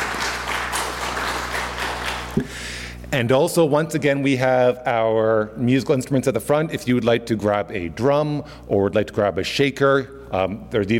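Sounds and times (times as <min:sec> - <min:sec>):
audience round of applause: 0:00.0 - 0:02.4
speech: 0:02.4 - 0:10.9.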